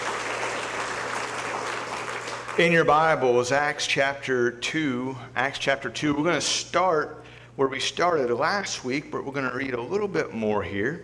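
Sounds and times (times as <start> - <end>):
church congregation applause: 0.0 - 3.1
speech: 2.6 - 11.0.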